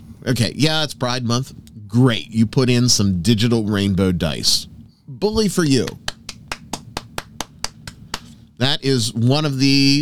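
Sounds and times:
speech: 0.2 - 6.0, 8.6 - 10.0
person applauding: 5.8 - 8.4.

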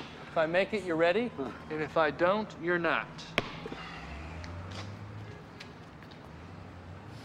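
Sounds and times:
speech: 0.4 - 3.3
basketball bouncing away after a missed shot: 3.3 - 3.8.

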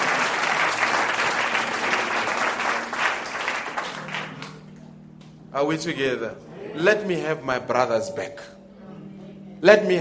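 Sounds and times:
audience clapping: 0.0 - 4.9
speech: 5.5 - 8.6, 9.6 - 9.9.

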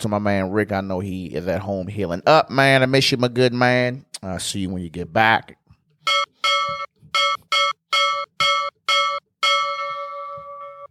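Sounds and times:
speech: 0.0 - 9.2
bell: 6.1 - 10.9.

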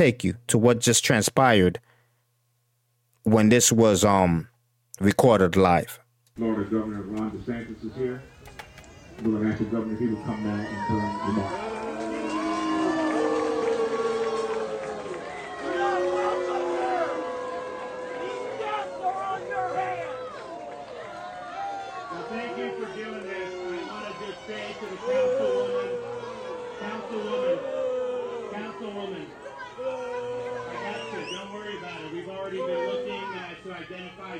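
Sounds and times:
speech: 0.0 - 1.9, 3.2 - 8.3, 9.2 - 11.7
crowd booing: 8.8 - 34.3.

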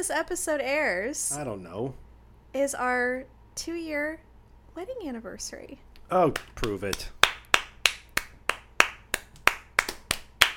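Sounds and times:
speech: 0.0 - 7.2
hand claps: 6.3 - 10.5.

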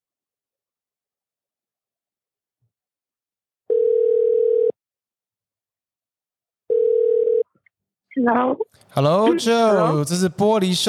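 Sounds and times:
telephone dial tone of a call-in: 3.7 - 4.8, 6.7 - 7.5
speech: 8.2 - 10.8.

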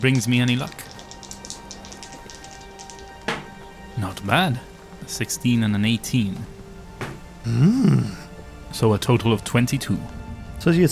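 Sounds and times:
speech: 0.0 - 0.9, 4.0 - 6.6, 7.4 - 10.9
dice rolling on a table: 0.0 - 3.5.

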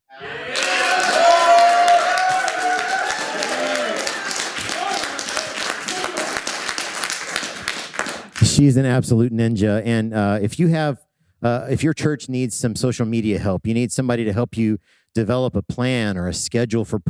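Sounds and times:
raucous applause: 0.1 - 8.6
speech: 8.6 - 17.0.

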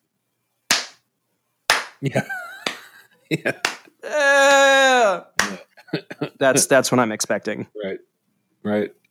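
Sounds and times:
lone person clapping slowly: 1.7 - 2.0, 2.6 - 2.9, 3.6 - 3.9, 5.4 - 5.6
speech: 2.0 - 2.4, 3.3 - 5.6, 6.4 - 9.0.

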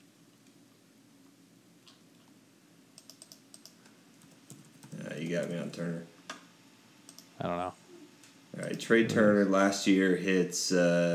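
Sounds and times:
low steady hum: 0.0 - 11.1
typing on a computer keyboard: 3.0 - 5.8
speech: 5.3 - 6.1, 7.4 - 7.8, 8.6 - 11.1.

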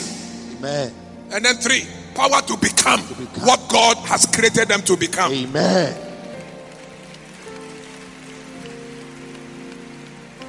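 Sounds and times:
speech: 0.6 - 6.0
audience clapping: 3.7 - 10.4.

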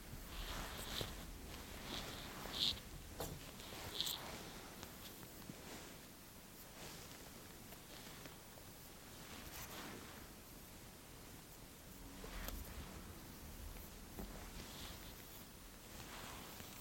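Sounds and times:
fabric rustling and brushing: 0.0 - 16.7.

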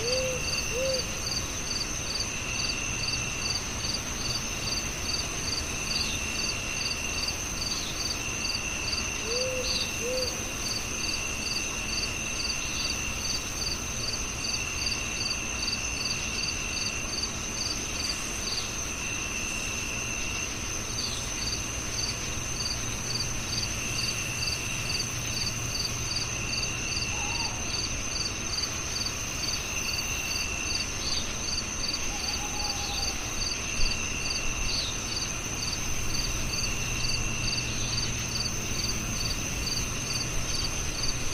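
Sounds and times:
soft owl hoots: 0.0 - 1.2, 9.2 - 10.5, 27.1 - 27.8, 32.0 - 33.3
crickets chirping: 0.0 - 41.3.

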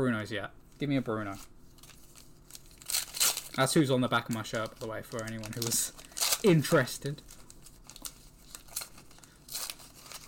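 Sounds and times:
speech: 0.0 - 1.6, 3.6 - 7.4
Match Attax 23/24 trading card packs torn open: 1.3 - 10.2.

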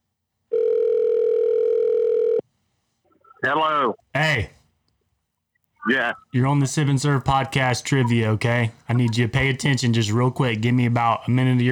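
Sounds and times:
telephone dial tone while placing a call: 0.5 - 2.4
speech: 3.4 - 4.6, 5.9 - 11.6.

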